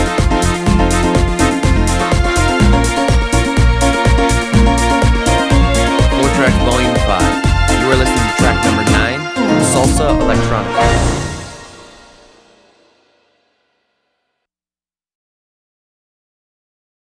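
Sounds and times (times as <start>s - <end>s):
electronic salsa music: 0.0s - 13.0s.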